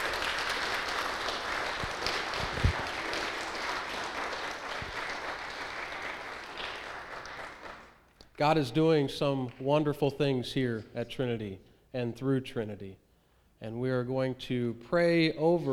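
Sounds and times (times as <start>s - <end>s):
church congregation applauding to welcome new members: 0.0s - 8.2s
speech: 8.4s - 13.0s, 13.6s - 15.7s.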